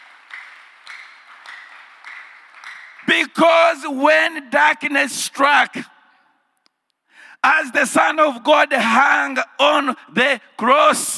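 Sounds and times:
audience clapping hands: 0.0s - 3.8s
speech: 3.0s - 5.9s, 7.4s - 11.1s.

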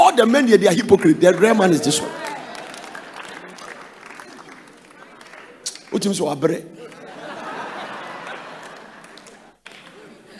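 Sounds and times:
speech: 0.2s - 2.2s, 5.9s - 6.9s
laughter: 1.4s - 5.6s, 6.7s - 10.3s
man clapping hands: 2.2s - 6.0s, 8.6s - 10.0s.

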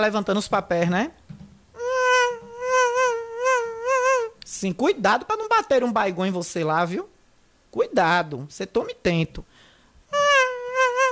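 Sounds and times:
speech: 0.0s - 1.3s, 4.6s - 9.6s
mosquito buzzing: 1.8s - 4.3s, 10.1s - 11.0s.

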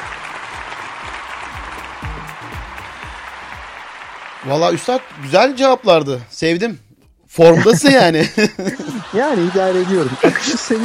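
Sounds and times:
sustained applause from a sizable crowd: 0.0s - 6.2s, 8.7s - 10.8s
speech: 4.4s - 10.8s
laughter: 7.5s - 10.8s.

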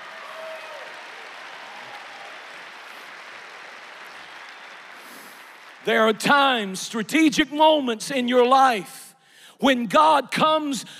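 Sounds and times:
audience clapping hands: 0.0s - 7.3s
speech: 5.8s - 9.0s, 9.6s - 10.9s.

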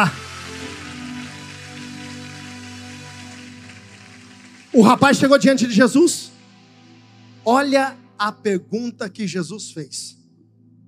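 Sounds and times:
speech: 0.0s - 0.2s, 4.8s - 6.3s, 7.4s - 10.2s
audience applauding: 0.0s - 6.1s.

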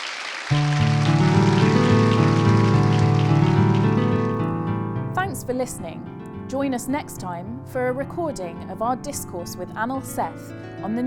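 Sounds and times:
audience applause: 0.0s - 4.5s
speech: 5.5s - 11.0s.

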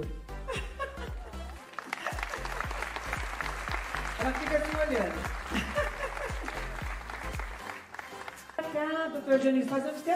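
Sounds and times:
laughter: 0.5s - 3.4s, 5.3s - 6.8s
audience applause: 1.4s - 8.6s
speech: 4.3s - 5.6s, 9.2s - 10.1s.

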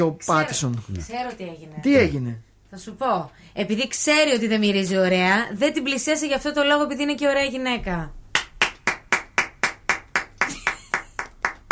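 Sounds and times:
speech: 0.0s - 8.2s
clapping: 8.3s - 11.7s.

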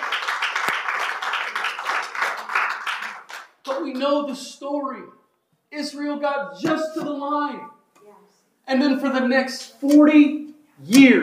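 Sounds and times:
audience hand clapping: 0.0s - 4.2s
speech: 3.8s - 7.8s, 8.7s - 11.2s.

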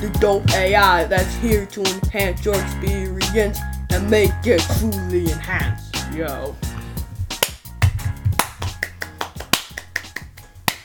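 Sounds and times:
speech: 0.0s - 6.7s
hand clapping: 6.8s - 10.8s.

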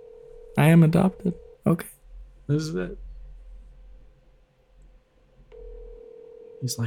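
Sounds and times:
telephone ringing: 0.0s - 1.6s, 5.5s - 6.8s
speech: 0.6s - 3.0s, 6.6s - 6.8s.

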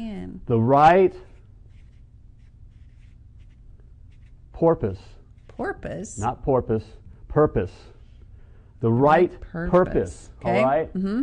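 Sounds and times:
speech: 0.0s - 1.3s, 4.6s - 7.9s, 8.8s - 11.2s
writing strokes scratching: 1.0s - 6.2s.

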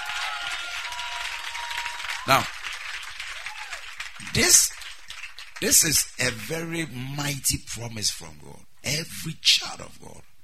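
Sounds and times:
audience clapping hands: 0.0s - 6.6s
speech: 2.3s - 2.6s, 4.3s - 4.8s, 5.6s - 10.3s.

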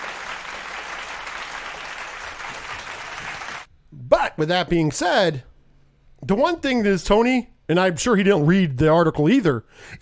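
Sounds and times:
audience applause: 0.0s - 3.7s
speech: 4.4s - 5.5s, 6.3s - 10.0s.

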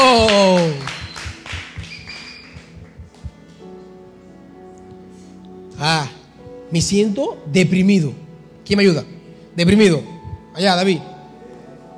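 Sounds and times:
audience applause: 0.5s - 2.8s
speech: 6.7s - 11.1s.

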